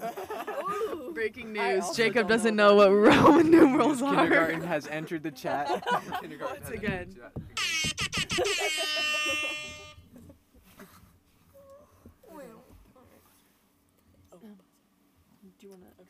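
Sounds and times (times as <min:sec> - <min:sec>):
laughter: 0:00.0 - 0:02.2, 0:03.0 - 0:07.0, 0:07.6 - 0:10.0
speech: 0:01.2 - 0:09.6, 0:15.6 - 0:16.0
buzzer: 0:07.6 - 0:10.1.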